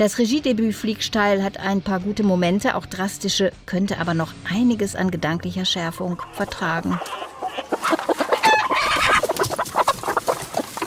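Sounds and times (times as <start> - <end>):
speech: 0.0 - 8.0
hen clucking: 5.7 - 10.8.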